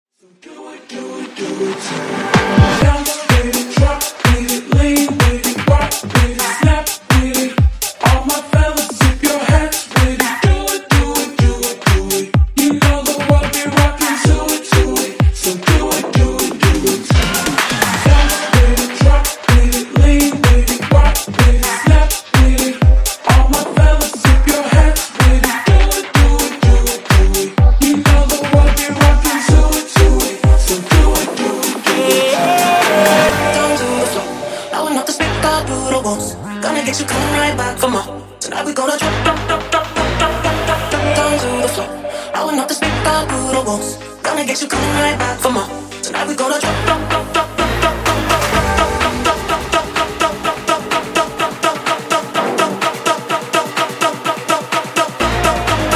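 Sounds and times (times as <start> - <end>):
clean a cappella vocals: 0.1 - 55.9.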